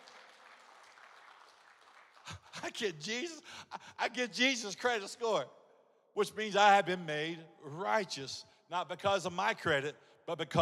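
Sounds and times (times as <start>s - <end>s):
audience hand clapping: 0.0s - 2.8s
speech: 2.3s - 5.6s, 6.2s - 10.6s.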